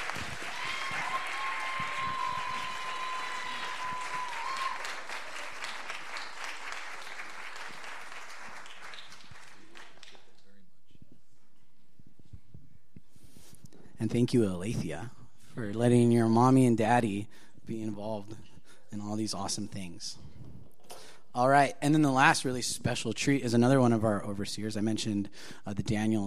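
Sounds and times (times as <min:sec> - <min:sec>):
audience clapping: 0:00.0 - 0:10.6
speech: 0:14.0 - 0:20.3, 0:21.3 - 0:26.2.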